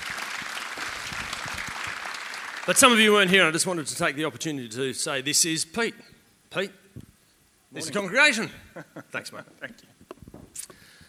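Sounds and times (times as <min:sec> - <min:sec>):
church congregation applauding a newly appointed associate pastor: 0:00.0 - 0:03.8
speech: 0:02.6 - 0:06.8, 0:07.7 - 0:10.0
laughter: 0:07.8 - 0:10.4.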